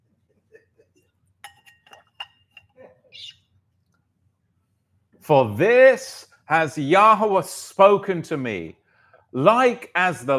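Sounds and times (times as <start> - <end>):
glass clinking: 1.4 - 2.8
speech: 5.3 - 10.3.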